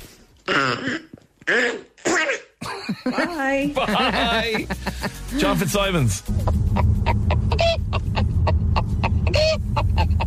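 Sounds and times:
speech: 0:00.5 - 0:01.9, 0:03.1 - 0:06.6
person sneezing in a quacking voice like a cartoon duck: 0:00.5 - 0:02.6
laughter: 0:02.6 - 0:10.2.

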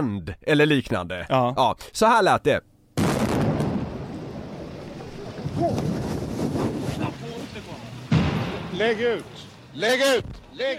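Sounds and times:
speech: 0:00.0 - 0:02.7, 0:08.8 - 0:10.7
violent detonation: 0:03.0 - 0:07.0, 0:08.1 - 0:09.0.

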